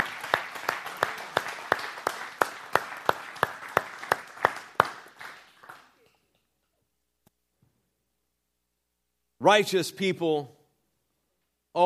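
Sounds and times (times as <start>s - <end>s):
crowd applauding indoors: 0.0s - 6.3s
loud steady hand claps keeping a regular beat: 0.0s - 6.3s
speech: 9.4s - 10.6s.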